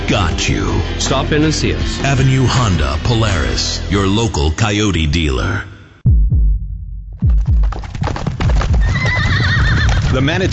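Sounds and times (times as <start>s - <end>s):
speech: 0.1s - 5.7s, 10.1s - 10.5s
heavy horse hooves clip-clopping: 7.2s - 10.5s
horse whinnying: 8.7s - 10.3s.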